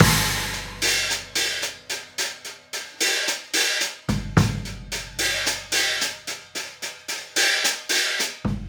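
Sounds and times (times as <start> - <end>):
kick drum: 0.0 - 0.7, 4.1 - 4.8, 8.5 - 8.6
hi-hat: 0.0 - 8.6.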